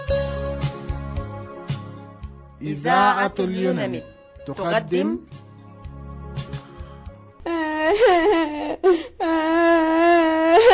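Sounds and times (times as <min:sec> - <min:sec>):
speech: 0:02.6 - 0:05.4, 0:07.9 - 0:09.4
girl crying in a radio drama: 0:07.4 - 0:10.7.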